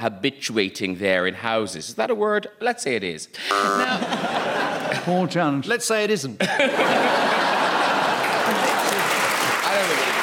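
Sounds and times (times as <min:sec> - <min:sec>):
speech: 0:00.0 - 0:07.4
faint murmurs and laughter: 0:03.7 - 0:05.1, 0:06.4 - 0:09.1
crowd applause: 0:06.8 - 0:10.2.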